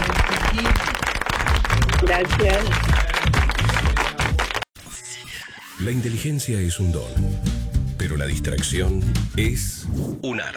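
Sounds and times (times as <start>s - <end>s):
audience applause: 0.0s - 4.6s
speech: 2.1s - 3.0s, 5.8s - 10.5s.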